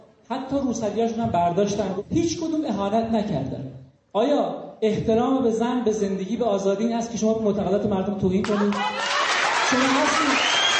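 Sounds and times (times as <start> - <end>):
speech: 0.3 - 9.1, 9.7 - 10.1
crowd clapping: 8.4 - 10.7
crowd whistling: 8.9 - 10.7.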